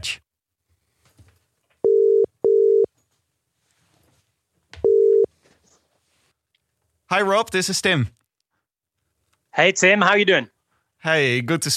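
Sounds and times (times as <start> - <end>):
speech: 0.0 - 0.2, 7.1 - 8.2, 9.6 - 11.7
telephone call ringback tone: 1.8 - 2.9, 4.8 - 5.3.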